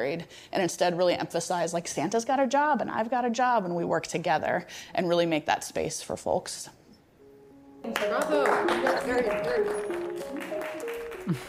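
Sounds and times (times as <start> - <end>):
speech: 0.0 - 6.8, 7.8 - 10.6, 11.3 - 11.4
audience clapping: 7.9 - 11.4.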